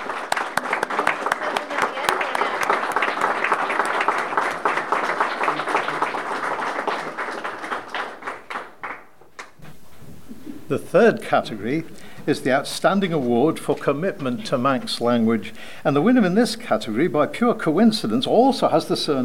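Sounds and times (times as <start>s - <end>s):
round of applause: 0.0s - 9.6s
speech: 10.7s - 19.2s.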